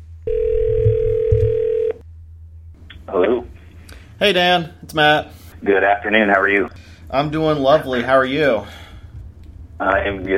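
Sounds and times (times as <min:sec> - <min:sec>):
telephone call connecting tone: 0:00.3 - 0:02.0
speech: 0:04.2 - 0:08.8, 0:09.8 - 0:10.3.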